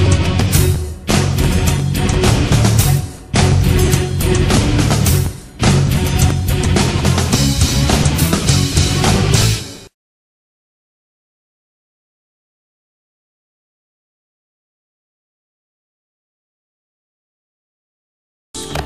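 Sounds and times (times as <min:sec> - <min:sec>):
march music: 0:00.0 - 0:09.9, 0:18.6 - 0:18.8.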